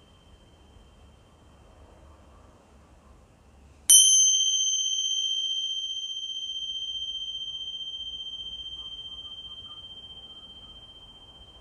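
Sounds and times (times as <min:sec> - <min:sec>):
small meditation bell ringing: 0:03.9 - 0:11.5.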